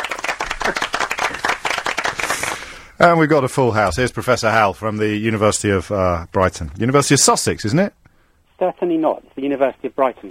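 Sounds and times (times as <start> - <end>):
crowd applauding: 0.0 - 2.7
speech: 0.7 - 0.9, 3.0 - 10.2.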